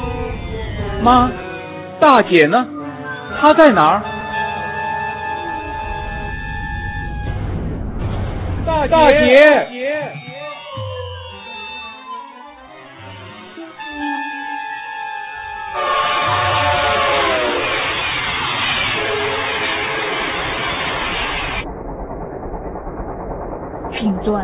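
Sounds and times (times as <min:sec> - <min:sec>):
horn-like notes: 0:00.0 - 0:07.4, 0:09.2 - 0:21.0
speech: 0:01.0 - 0:01.4, 0:02.0 - 0:04.1, 0:08.8 - 0:09.7
passenger train travelling north toward Beijing: 0:05.3 - 0:09.6, 0:15.8 - 0:24.4.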